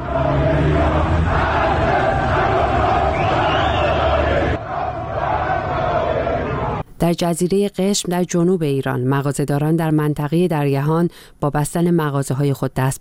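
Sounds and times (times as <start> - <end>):
protesters chanting anti-government slogans at night protests in Malard: 0.0 - 6.8
speech: 7.1 - 12.9.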